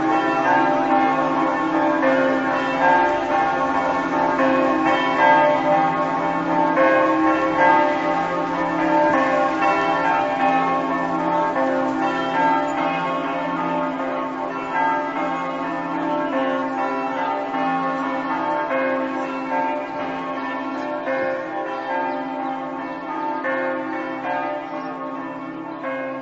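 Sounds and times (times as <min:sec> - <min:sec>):
bells in Cassacco: 0:00.0 - 0:26.1.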